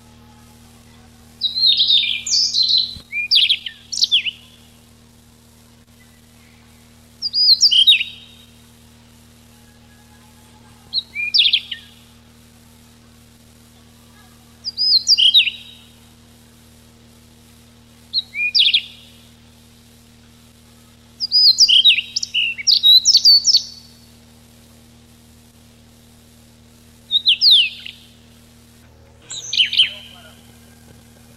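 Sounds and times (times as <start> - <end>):
low hum: 0.0 - 31.3
Siberian rubythroat whistled song: 1.4 - 4.4, 6.0 - 8.6, 10.9 - 12.0, 14.7 - 15.8, 18.1 - 19.0, 21.2 - 23.9, 27.1 - 28.1, 29.3 - 30.8.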